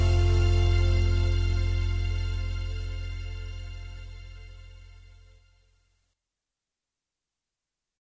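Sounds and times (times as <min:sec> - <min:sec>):
vocals: 0:00.0 - 0:04.2.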